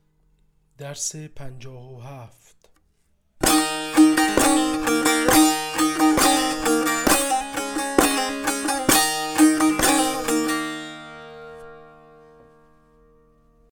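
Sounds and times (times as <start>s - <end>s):
tanbur practice: 3.4s - 13.5s.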